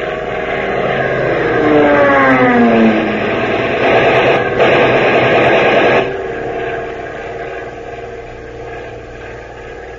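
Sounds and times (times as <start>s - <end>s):
diving warplane engine roaring: 0.0s - 9.9s
warplane strafing with machine gun: 3.8s - 6.2s.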